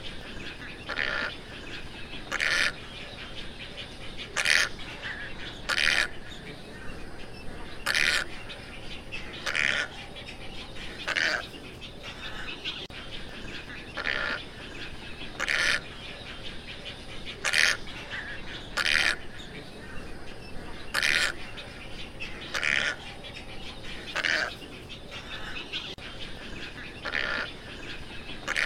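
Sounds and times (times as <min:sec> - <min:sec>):
tricolored heron squawks: 0:00.6 - 0:03.3, 0:04.2 - 0:06.5, 0:07.7 - 0:08.6, 0:09.2 - 0:10.1, 0:10.8 - 0:13.0, 0:13.6 - 0:14.5, 0:15.1 - 0:16.4, 0:17.3 - 0:19.6, 0:20.7 - 0:28.6.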